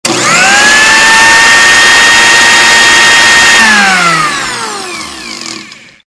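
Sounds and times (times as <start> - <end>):
cooking blender running: 0.0 - 6.1.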